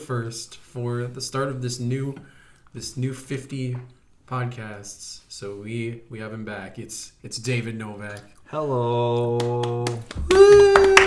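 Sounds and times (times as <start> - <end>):
speech: 0.0 - 11.0
round of applause: 9.1 - 11.0.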